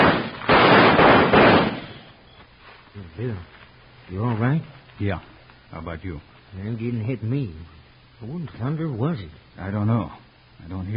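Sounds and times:
gunshots in the dark: 0:00.0 - 0:02.2
speech: 0:03.2 - 0:10.9.

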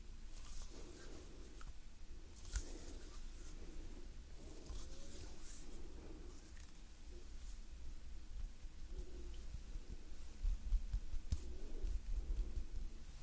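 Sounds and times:
gentle hand movements rustling: 0:00.3 - 0:13.2
airy breaths: 0:00.6 - 0:06.8, 0:11.4 - 0:12.8.

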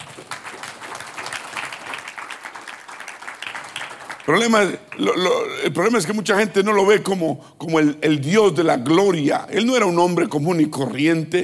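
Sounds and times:
audience applauding: 0:00.0 - 0:05.2
speech: 0:04.3 - 0:11.4.

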